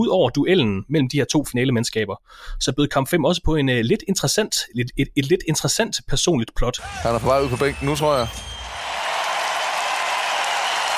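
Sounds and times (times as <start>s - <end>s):
speech: 0.0s - 8.6s
crowd standing ovation applause: 6.8s - 10.9s.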